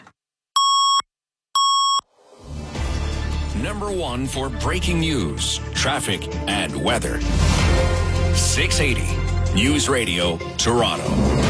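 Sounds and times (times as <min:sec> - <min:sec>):
double time-signal tones: 0:00.6 - 0:02.1
speech: 0:03.6 - 0:11.4.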